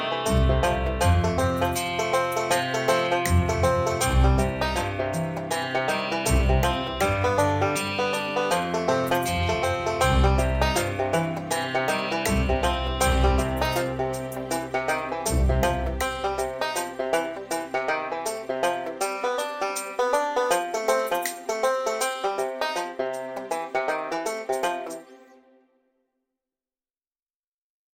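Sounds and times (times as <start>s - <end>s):
guitar playing: 0.0s - 25.6s.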